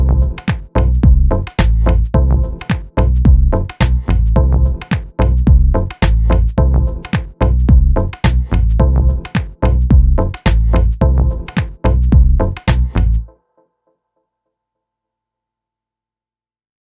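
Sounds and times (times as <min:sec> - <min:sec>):
music loop: 0:00.0 - 0:13.3.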